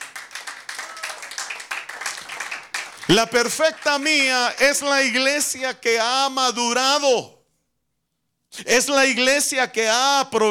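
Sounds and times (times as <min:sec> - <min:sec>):
audience clapping: 0:00.0 - 0:04.8
speech: 0:03.1 - 0:07.4, 0:08.6 - 0:10.4.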